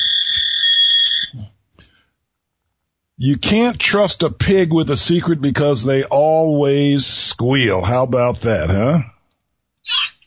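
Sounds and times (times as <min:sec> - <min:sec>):
fax machine noise: 0:00.0 - 0:01.3
speech: 0:03.2 - 0:09.1.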